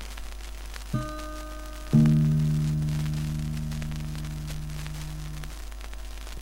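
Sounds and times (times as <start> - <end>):
guitar tuning: 0.9 - 5.8.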